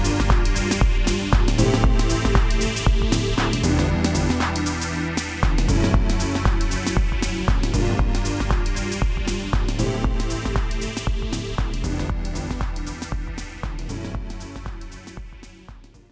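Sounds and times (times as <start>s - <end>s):
house music on a drum machine: 0.0s - 16.0s.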